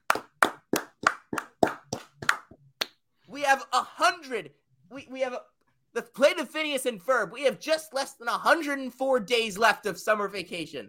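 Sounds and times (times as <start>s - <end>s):
hand claps: 0.0s - 3.0s
speech: 3.5s - 10.8s.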